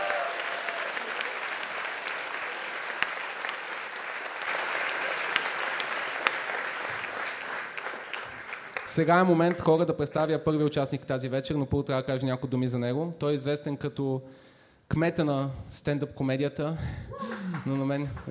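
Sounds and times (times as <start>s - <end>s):
audience applause at a comedy roast: 0.0s - 9.6s, 17.2s - 18.3s
speech: 9.0s - 18.3s.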